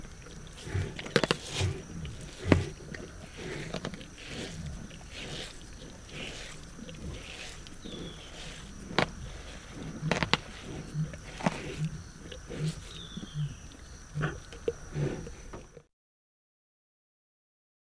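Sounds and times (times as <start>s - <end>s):
group of lions feeding: 0.0s - 15.9s.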